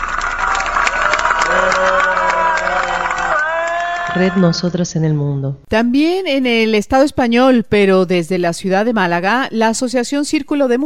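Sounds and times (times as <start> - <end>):
applause: 0.0 - 4.3
crowd cheering and shouting: 0.0 - 4.7
speech: 4.2 - 10.8.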